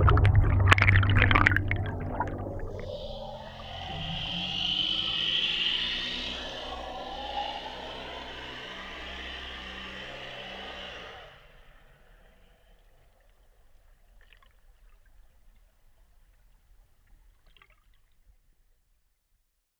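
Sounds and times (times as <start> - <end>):
gabarre boat motor heard underwater in Vézac: 0.0 - 13.4.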